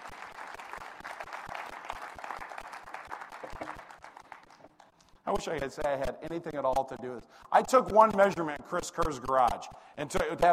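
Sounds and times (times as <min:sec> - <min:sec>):
audience clapping: 0:00.0 - 0:05.1
speech: 0:05.3 - 0:10.5.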